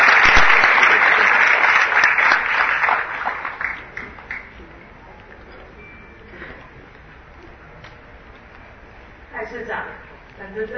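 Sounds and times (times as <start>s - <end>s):
crowd applauding: 0.0s - 4.7s.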